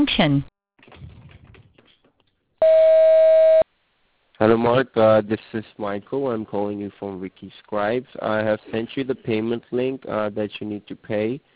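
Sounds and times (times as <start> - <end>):
speech: 0.1 - 0.5, 4.4 - 11.5
voicemail beep signalling start of recording: 2.6 - 3.6.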